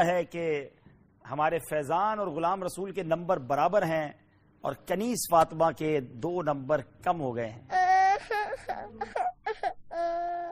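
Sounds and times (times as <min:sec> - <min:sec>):
speech: 0:00.0 - 0:07.8, 0:08.5 - 0:10.5
young girl crying during a children's quiz show: 0:07.7 - 0:10.5.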